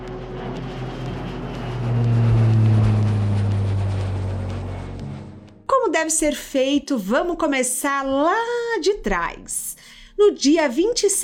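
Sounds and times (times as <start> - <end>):
private jet engines roaring during takeoff: 0.0 - 5.7
speech: 6.0 - 11.2.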